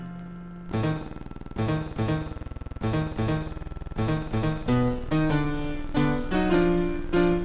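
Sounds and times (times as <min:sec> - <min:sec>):
AGI MIDI music: 0:00.7 - 0:07.3.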